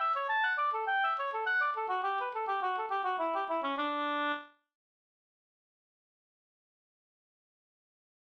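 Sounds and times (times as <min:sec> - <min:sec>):
polka music: 0:00.0 - 0:04.5.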